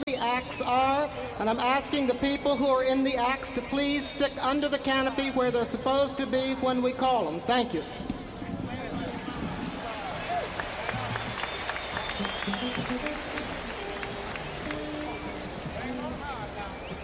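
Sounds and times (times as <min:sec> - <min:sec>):
speech: 0:00.4 - 0:08.1
crowd applauding: 0:08.2 - 0:17.0
cheering: 0:08.9 - 0:17.0.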